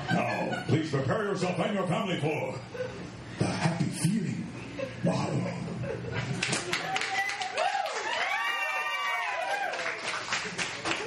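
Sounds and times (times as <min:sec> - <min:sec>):
laughter: 0:00.0 - 0:00.9, 0:04.6 - 0:07.1
speech: 0:00.9 - 0:06.6
audience clapping: 0:06.3 - 0:11.0.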